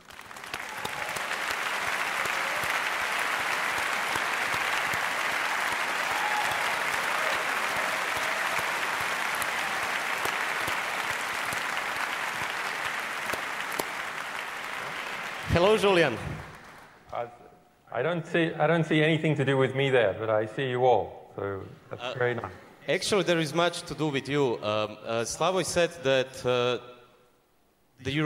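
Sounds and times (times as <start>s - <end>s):
audience applause: 0.0s - 17.0s
speech: 15.6s - 16.3s, 18.0s - 26.9s, 28.0s - 28.2s.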